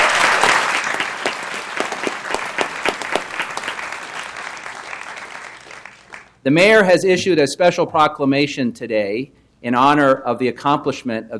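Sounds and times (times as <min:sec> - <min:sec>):
crowd applauding drummers at the 2012 National We the People competition in Washington, D.C.: 0:00.0 - 0:06.4
speech: 0:06.4 - 0:11.3.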